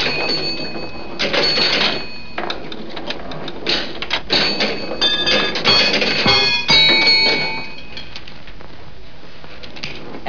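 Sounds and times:
pinball machine: 0:00.0 - 0:08.2.

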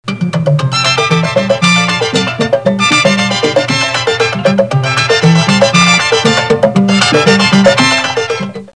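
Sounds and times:
cha-cha music: 0:00.0 - 0:08.7.

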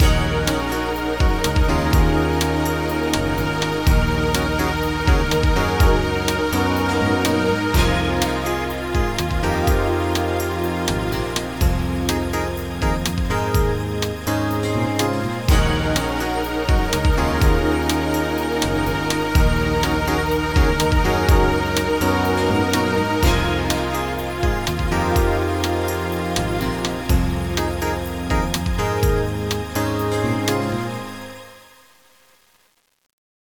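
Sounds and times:
film music riffs: 0:00.0 - 0:32.0.

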